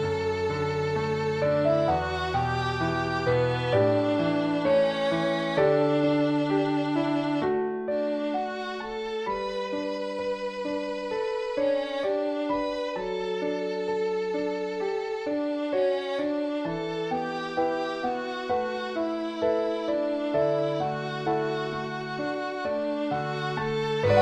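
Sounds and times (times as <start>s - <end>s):
piano: 0.0s - 24.2s
violin: 0.0s - 24.2s.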